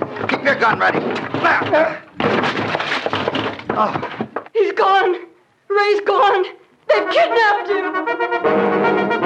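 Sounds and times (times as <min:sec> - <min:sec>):
door being broken down: 0:00.0 - 0:04.5
speech: 0:00.5 - 0:02.7, 0:03.8 - 0:09.1.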